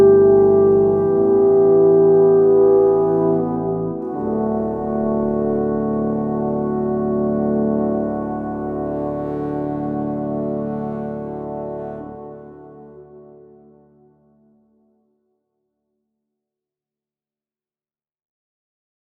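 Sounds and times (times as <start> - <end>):
quiet horns: 0.0 - 14.2.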